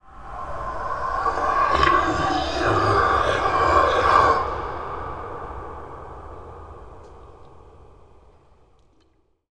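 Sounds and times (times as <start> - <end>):
howling: 0.0 - 8.0
strange ambience: 0.0 - 8.8.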